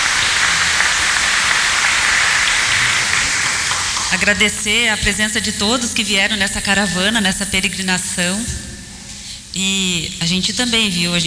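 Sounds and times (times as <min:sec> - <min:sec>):
round of applause: 0:00.0 - 0:04.4
speech: 0:04.1 - 0:08.7, 0:09.6 - 0:11.2.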